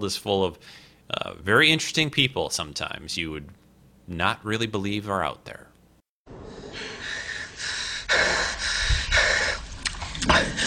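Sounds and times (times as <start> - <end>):
speech: 0.0 - 5.7
heavy panting from someone out of breath: 6.6 - 10.6.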